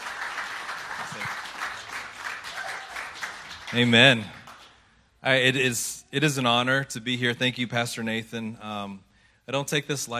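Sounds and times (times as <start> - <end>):
church congregation applauding a guest preacher: 0.0 - 4.8
speech: 3.7 - 4.4, 5.2 - 10.1.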